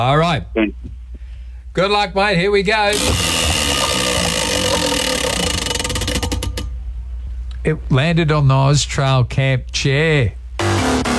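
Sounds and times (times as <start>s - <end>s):
speech: 0.0s - 1.0s, 1.8s - 3.4s, 7.6s - 10.4s
steady hum: 0.0s - 11.1s
prize wheel spinning and ticking: 3.0s - 6.7s.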